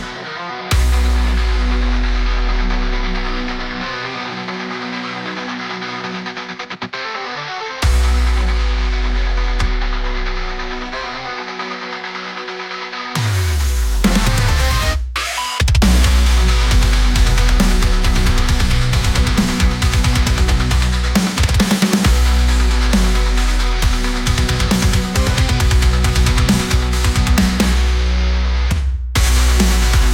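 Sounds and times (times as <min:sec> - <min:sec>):
brostep banger bass: 0:00.7 - 0:04.0, 0:07.8 - 0:11.3, 0:13.3 - 0:30.1.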